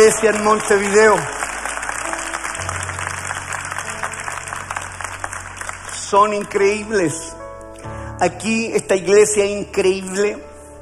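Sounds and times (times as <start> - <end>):
speech: 0.0 - 1.4, 6.1 - 7.4, 8.2 - 10.5
audience applause: 0.0 - 6.5.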